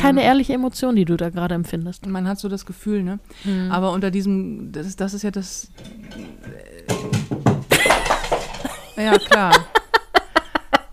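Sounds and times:
speech: 0.0 - 7.4, 9.0 - 9.8
cat knocking over things in the room: 5.8 - 9.0
laughter: 7.7 - 10.9.

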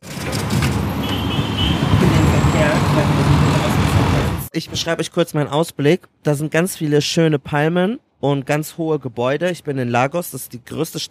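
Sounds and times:
city street traffic of cars, buses and trucks in Lagos: 0.0 - 4.5
indistinct voices: 1.8 - 4.5
speech: 4.6 - 11.0.

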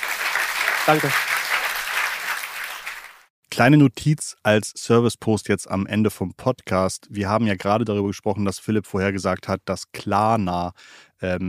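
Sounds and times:
applause: 0.0 - 3.3
speech: 0.9 - 1.4, 3.6 - 11.4.

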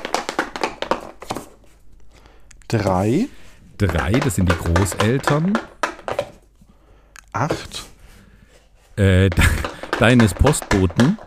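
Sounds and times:
dice being rolled: 0.0 - 1.5, 3.8 - 6.4, 9.3 - 11.2
speech: 2.7 - 5.7, 7.4 - 7.9, 9.0 - 11.2.

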